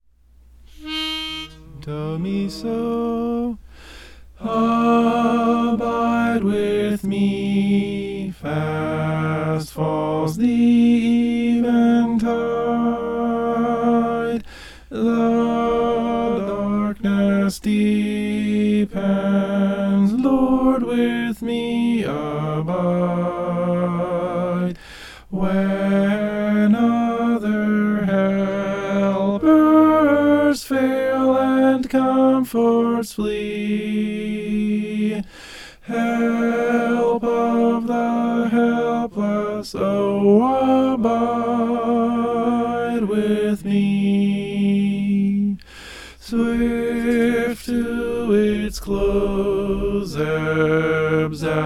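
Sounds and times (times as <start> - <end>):
tenor singing: 0.7 - 3.7, 4.4 - 51.6.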